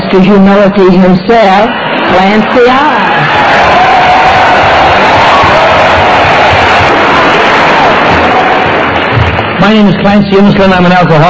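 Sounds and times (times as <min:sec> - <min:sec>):
speech: 0:00.1 - 0:03.0, 0:09.6 - 0:11.2
audience applause: 0:01.9 - 0:10.9.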